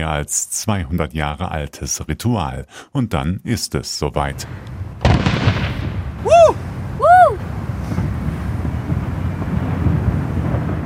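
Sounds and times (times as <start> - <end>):
speech: 0.0 - 4.8
wind noise: 4.3 - 10.8
cannon shot echoing off surrounding hills: 4.4 - 10.8.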